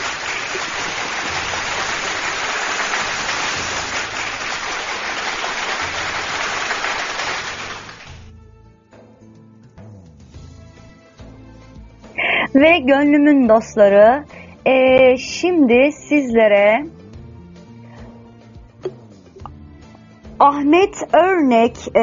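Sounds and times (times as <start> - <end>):
audience applause after a Turkish poetry reading: 0.0 - 8.3
speech: 12.6 - 17.0, 20.4 - 22.0.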